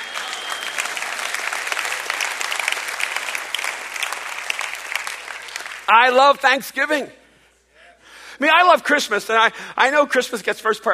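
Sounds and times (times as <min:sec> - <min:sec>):
audience clapping: 0:00.0 - 0:06.5
speech: 0:05.9 - 0:07.2, 0:08.4 - 0:10.9.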